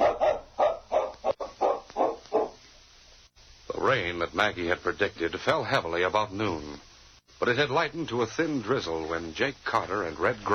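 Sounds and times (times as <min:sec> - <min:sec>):
dog barking: 0:00.0 - 0:02.6
speech: 0:03.8 - 0:10.5.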